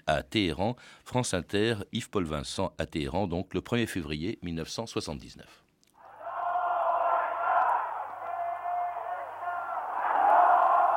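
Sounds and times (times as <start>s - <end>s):
speech: 0.0s - 5.6s
huge crowd cheering: 6.0s - 10.9s.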